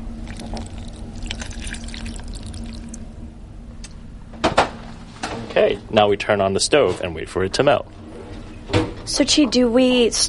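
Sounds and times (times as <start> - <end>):
low hum: 0.0 - 10.2
water poured into a saucepan: 0.2 - 3.0
speech: 5.6 - 8.0, 9.1 - 10.2.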